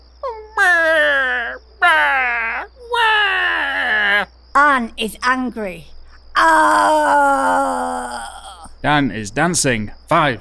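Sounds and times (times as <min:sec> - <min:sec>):
person imitating a crying baby: 0:00.2 - 0:04.3, 0:06.4 - 0:08.7
speech: 0:04.8 - 0:07.3, 0:08.8 - 0:10.4.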